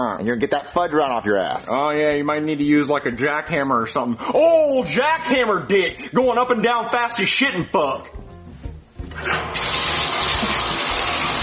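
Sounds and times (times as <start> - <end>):
speech: 0.0 - 8.2
bathtub filling with running tap water: 9.1 - 11.4.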